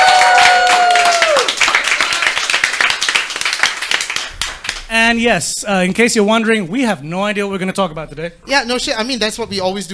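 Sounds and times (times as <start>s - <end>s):
applause and clapping: 0.0s - 5.0s
speech: 5.1s - 9.9s.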